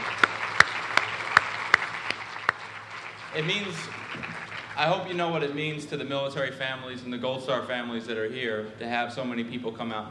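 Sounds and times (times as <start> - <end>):
audience hand claps in Texas supporting military and Gold Star families: 0.0 - 5.2
speech: 3.4 - 10.0.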